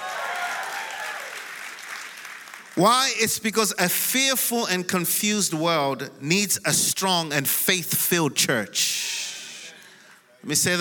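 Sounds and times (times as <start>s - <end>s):
audience clapping: 0.0s - 3.2s
speech: 2.8s - 9.2s, 10.4s - 10.7s.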